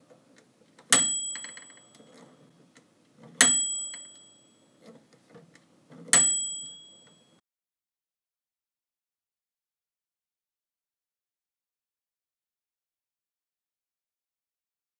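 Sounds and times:
microwave oven chime: 0:00.9 - 0:02.5, 0:03.4 - 0:04.8, 0:06.1 - 0:07.4.

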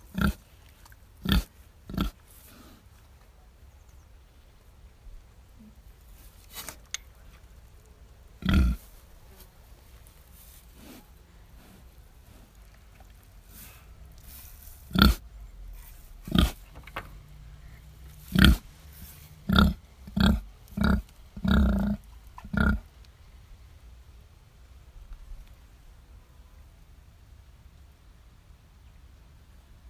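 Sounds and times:
pig grunting: 0:00.1 - 0:00.4, 0:01.2 - 0:02.6, 0:08.4 - 0:09.0, 0:14.2 - 0:15.2, 0:16.2 - 0:16.6, 0:18.2 - 0:18.7, 0:19.4 - 0:22.8.

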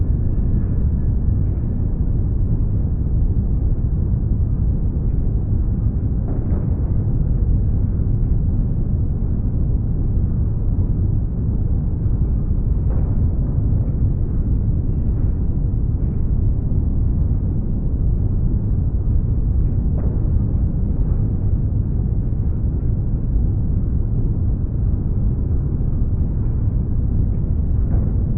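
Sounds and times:
otherworldly gloomy industrial ambience: 0:00.0 - 0:28.3.

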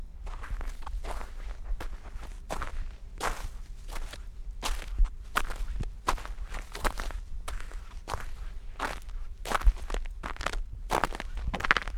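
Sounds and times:
footsteps in snow: 0:00.2 - 0:11.9.

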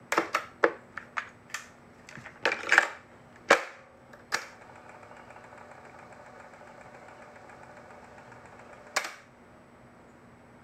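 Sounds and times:
cassette tape mechanism action: 0:00.1 - 0:09.3.

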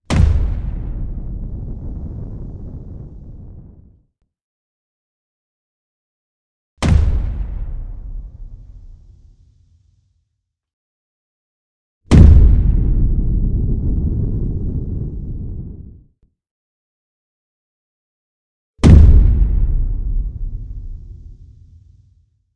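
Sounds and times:
bass kick drum explosion: 0:00.1 - 0:03.9, 0:06.8 - 0:08.9, 0:12.1 - 0:16.0, 0:18.8 - 0:21.6.

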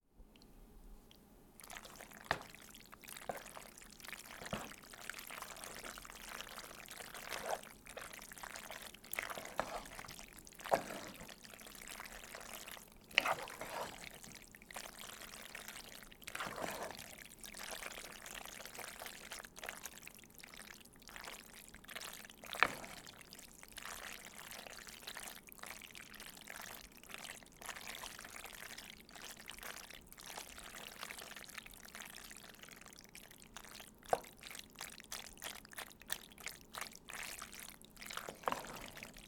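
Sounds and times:
pasta being stirred: 0:01.6 - 0:39.2.

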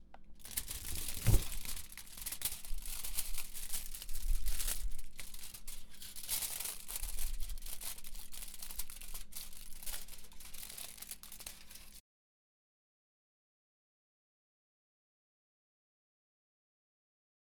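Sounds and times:
foil: 0:00.4 - 0:12.0.

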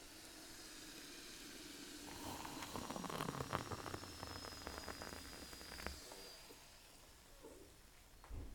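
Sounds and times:
coffee pouring: 0:01.6 - 0:06.6.

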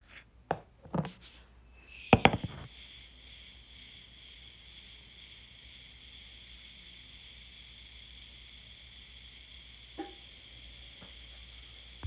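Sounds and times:
hourglass sound: 0:01.6 - 0:09.7.

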